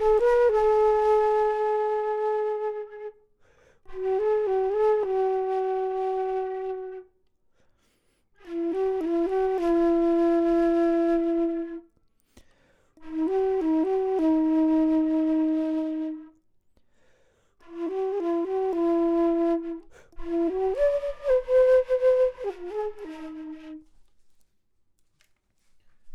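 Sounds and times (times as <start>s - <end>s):
low flute: 0.0s - 7.2s, 8.4s - 12.0s, 13.0s - 16.4s, 17.6s - 24.1s.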